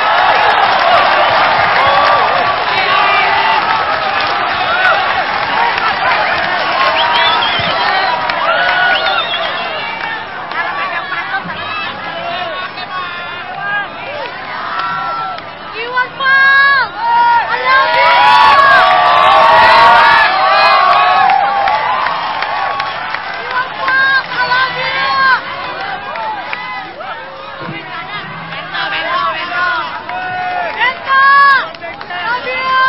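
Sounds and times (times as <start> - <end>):
crowd applauding and cheering: 0.0 - 32.8.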